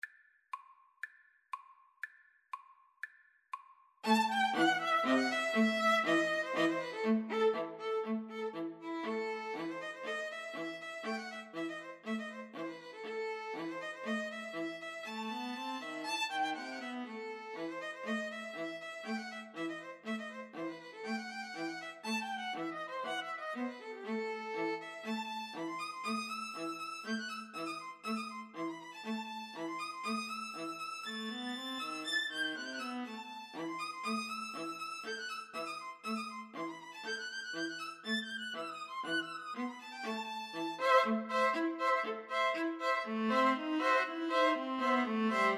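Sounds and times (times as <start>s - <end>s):
two violins and viola playing a freilechs: 4.0s - 45.5s.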